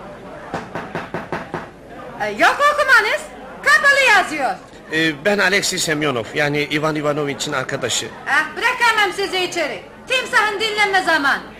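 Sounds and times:
knocking on a door: 0:00.5 - 0:01.8
speech: 0:02.2 - 0:11.5.

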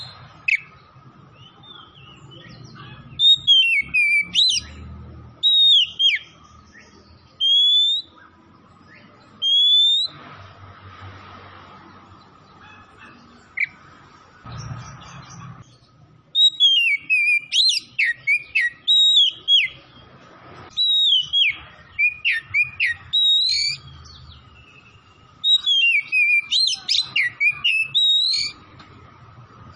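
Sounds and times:
oriental magpie-robin song: 0:03.0 - 0:04.8, 0:05.4 - 0:08.3, 0:08.9 - 0:10.2, 0:16.3 - 0:19.9, 0:20.7 - 0:28.6.

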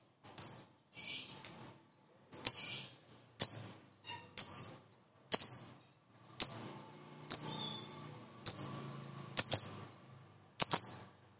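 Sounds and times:
lovebird giving sharp high chirps: 0:00.3 - 0:01.8, 0:02.4 - 0:03.8, 0:04.4 - 0:05.8, 0:06.4 - 0:07.9, 0:08.5 - 0:11.1.

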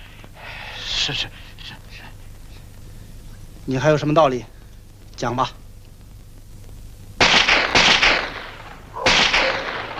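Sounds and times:
speech: 0:01.0 - 0:01.8, 0:03.7 - 0:04.6, 0:05.2 - 0:05.6
gunshots: 0:07.2 - 0:09.9.

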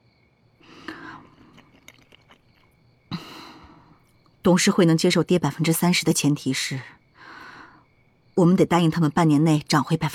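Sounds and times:
chewing a bite of grilled cold noodles, kao leng mian: 0:00.7 - 0:03.3
speech: 0:04.4 - 0:07.0, 0:08.4 - 0:10.1.

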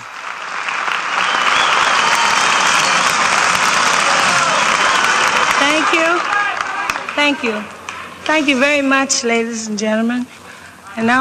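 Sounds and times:
audience applause at a live concert: 0:00.0 - 0:08.6
speech: 0:05.9 - 0:06.3, 0:07.2 - 0:10.4, 0:11.0 - 0:11.1.

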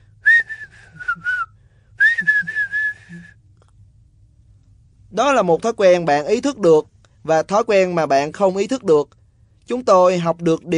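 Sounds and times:
human whistling: 0:00.2 - 0:03.4
speech: 0:05.2 - 0:10.7.

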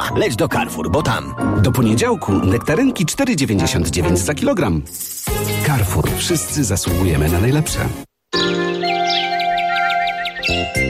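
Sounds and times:
speech: 0:00.2 - 0:08.6
sparrows chirping: 0:08.4 - 0:10.8.

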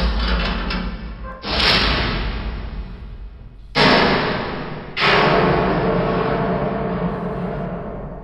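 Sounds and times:
iron gate crashing down: 0:00.0 - 0:08.2.

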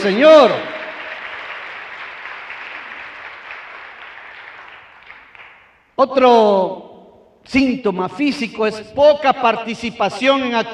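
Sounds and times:
speech: 0:00.0 - 0:00.7, 0:06.0 - 0:10.7
audience applauding: 0:00.0 - 0:05.8.

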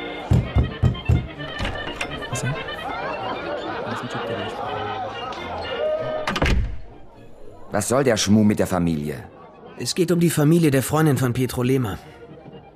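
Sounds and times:
murmur of indistinct voices: 0:00.0 - 0:12.7
heavy knocks and clunks of a door marked private opening: 0:00.2 - 0:02.3, 0:06.2 - 0:07.0
laughter: 0:00.4 - 0:06.3
speech: 0:02.4 - 0:02.7, 0:07.7 - 0:12.2.

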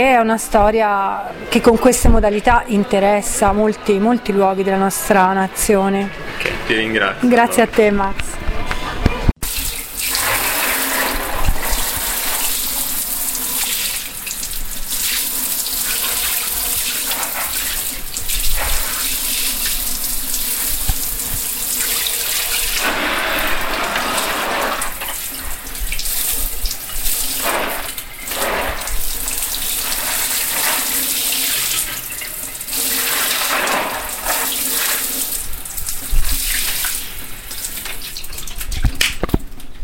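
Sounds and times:
speech: 0:00.0 - 0:08.4
shower water running: 0:09.4 - 0:39.3.

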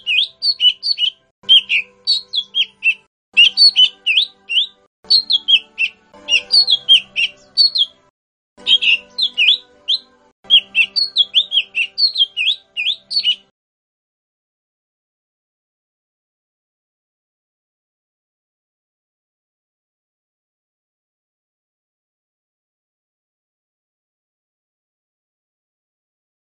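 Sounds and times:
bird song of short bright whistled phrases and rasping buzzy bursts: 0:00.0 - 0:13.5.

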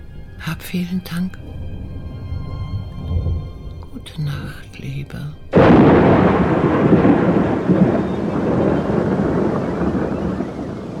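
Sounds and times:
speech: 0:00.4 - 0:01.6, 0:03.9 - 0:08.6
stormy wind: 0:01.4 - 0:04.1, 0:05.5 - 0:10.9
thunder rumble: 0:01.4 - 0:10.9.

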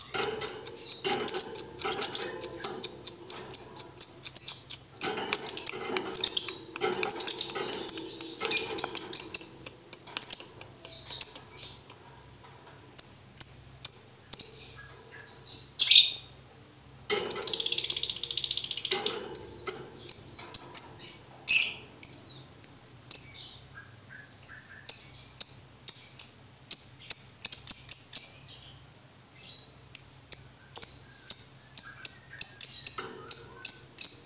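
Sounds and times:
lovebird shrill chirping: 0:00.0 - 0:11.8, 0:17.1 - 0:23.5, 0:31.8 - 0:34.2.

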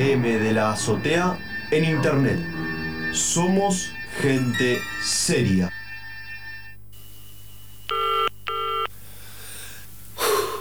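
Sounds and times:
speech: 0:00.1 - 0:05.8
electronic telephone dialing tones: 0:07.9 - 0:08.9
breathy hiss: 0:08.9 - 0:10.5.

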